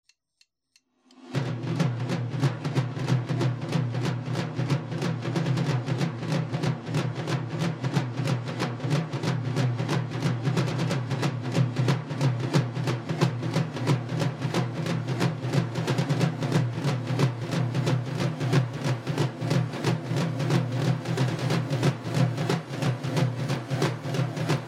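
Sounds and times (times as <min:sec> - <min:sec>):
war drums: 0:01.3 - 0:24.6.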